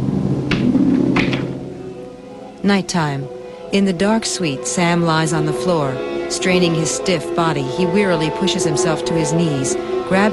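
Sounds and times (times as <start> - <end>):
low steady hum: 0.0 - 10.3
hotel suite door closing: 0.5 - 1.8
speech: 2.6 - 10.3.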